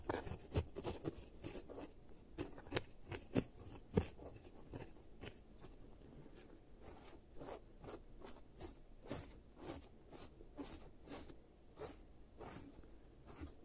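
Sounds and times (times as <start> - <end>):
dental-style tapping and scraping: 0.0 - 7.5
low soft rustle: 0.0 - 13.6.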